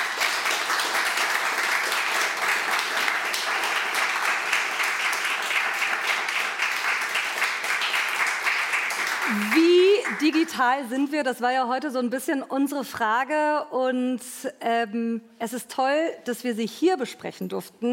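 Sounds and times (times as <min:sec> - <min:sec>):
audience applause: 0:00.0 - 0:10.5
speech: 0:10.2 - 0:17.9.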